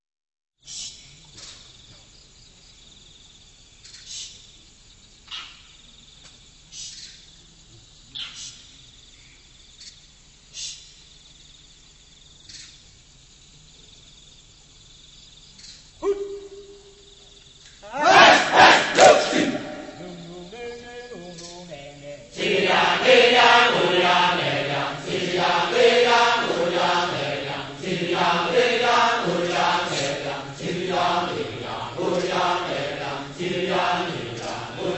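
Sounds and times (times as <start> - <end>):
kecak chanting: 17.8 - 34.9.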